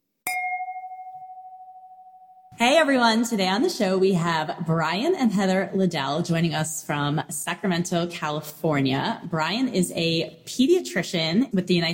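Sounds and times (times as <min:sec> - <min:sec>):
glasses clinking: 0:00.3 - 0:02.0
high ringing tone: 0:00.3 - 0:02.6
speech: 0:02.6 - 0:11.9.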